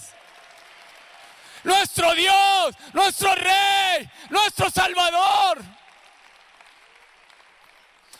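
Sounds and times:
audience applauding: 0.1 - 1.6, 4.9 - 8.1
speech: 1.6 - 5.8.

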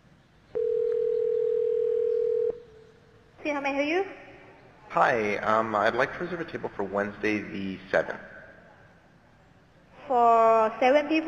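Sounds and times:
telephone call tone: 0.6 - 2.6
speech: 3.5 - 4.2, 4.9 - 8.3, 10.1 - 11.2.

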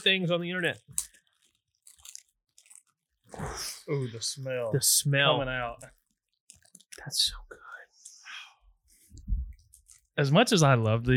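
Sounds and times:
speech: 0.0 - 1.0, 3.3 - 6.0, 7.0 - 7.5, 10.2 - 11.1
product packaging crinkling and tearing as it is opened: 0.0 - 7.3, 8.9 - 10.6.

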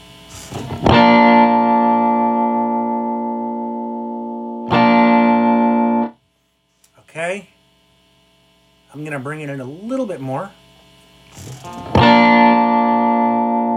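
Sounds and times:
guitar through flanger-like modulation effect pedal: 0.0 - 6.2, 10.8 - 13.7
speech: 9.0 - 10.6, 11.4 - 12.5.

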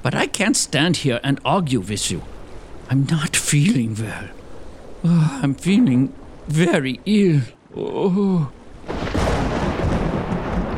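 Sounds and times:
speech: 0.1 - 4.4, 5.0 - 9.2
thunder crash: 8.8 - 10.7.

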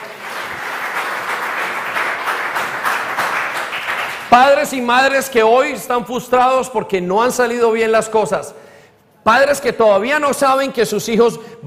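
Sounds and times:
audience applause: 0.0 - 4.6
speech: 4.3 - 8.6, 9.2 - 11.6.

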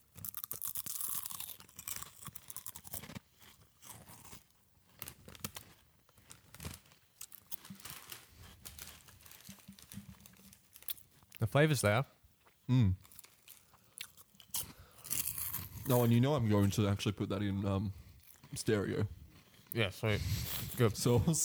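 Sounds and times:
crunchy chip from a bag being bitten and chewed: 0.0 - 19.8
speech: 11.4 - 13.0, 15.9 - 21.4.

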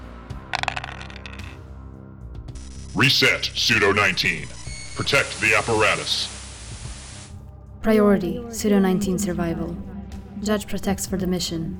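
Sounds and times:
dice being rolled: 0.6 - 1.6
speech: 3.0 - 6.4, 7.8 - 11.7.

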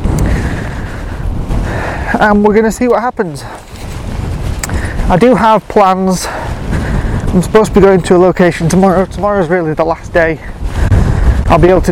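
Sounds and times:
strong wind buffeting the microphone by the sea: 0.0 - 11.8
speech: 2.2 - 3.7, 5.1 - 6.4, 7.3 - 10.6, 11.5 - 11.8.

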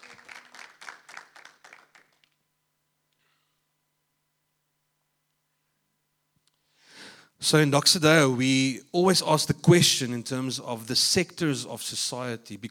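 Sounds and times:
audience applause: 0.0 - 2.3
speech: 7.4 - 12.6.

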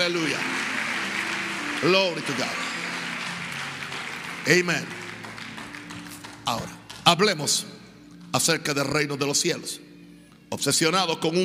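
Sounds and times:
speech: 0.0 - 0.6, 1.8 - 2.6, 4.4 - 5.0, 6.5 - 9.8, 10.5 - 11.4
audience applause: 0.0 - 7.0.

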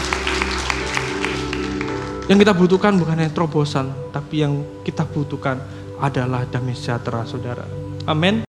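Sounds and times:
audience applause: 0.0 - 2.4
speech: 2.3 - 8.4.

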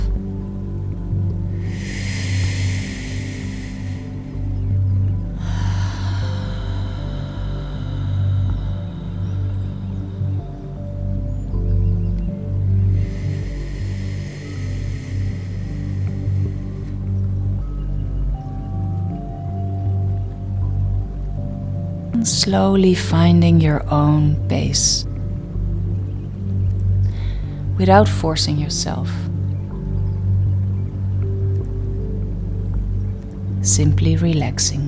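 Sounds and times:
low humming musical drone: 0.0 - 34.8
deep relaxed breathing: 1.5 - 11.2, 12.9 - 17.8, 27.0 - 27.8
speech: 22.2 - 25.1, 27.8 - 29.3, 33.7 - 34.8.

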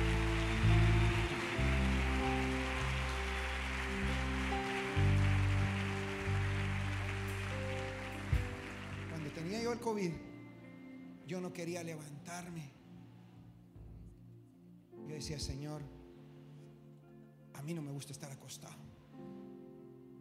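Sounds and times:
audience applause: 0.0 - 10.0
sustained keyboard chords: 0.0 - 17.9
speech: 9.7 - 10.3, 11.3 - 12.8, 15.2 - 16.0, 17.6 - 19.4.

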